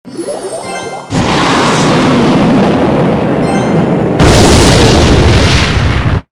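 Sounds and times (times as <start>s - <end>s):
rocket: 1.1s - 3.4s, 4.0s - 6.3s.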